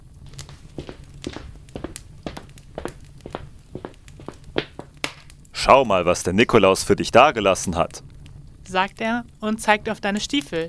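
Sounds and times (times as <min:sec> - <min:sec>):
crunchy footsteps walking: 0:00.0 - 0:05.5
speech: 0:05.6 - 0:08.1, 0:08.7 - 0:10.6.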